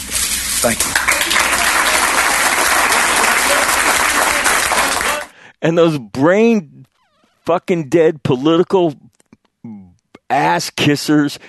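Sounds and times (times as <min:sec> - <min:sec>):
speech: 0:00.6 - 0:01.1, 0:05.6 - 0:06.8, 0:07.4 - 0:11.4
audience applause: 0:00.6 - 0:05.3.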